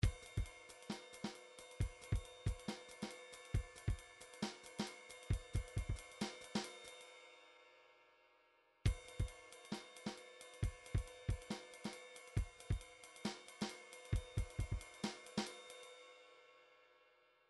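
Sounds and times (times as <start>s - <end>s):
midi drums: 0.0s - 6.7s, 8.9s - 15.5s.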